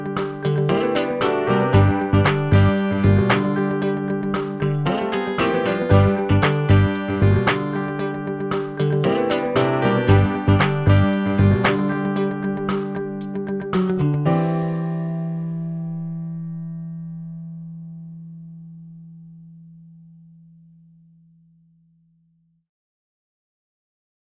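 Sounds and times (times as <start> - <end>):
theme music without music box: 0.6 - 15.4.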